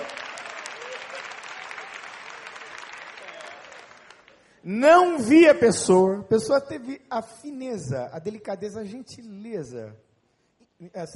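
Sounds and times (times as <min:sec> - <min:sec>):
audience applause: 0:00.0 - 0:04.5
speech: 0:04.6 - 0:10.0, 0:10.8 - 0:11.1.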